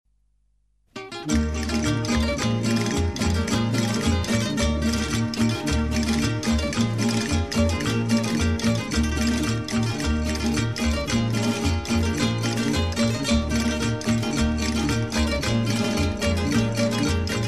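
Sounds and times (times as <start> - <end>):
guitar: 0.9 - 17.4.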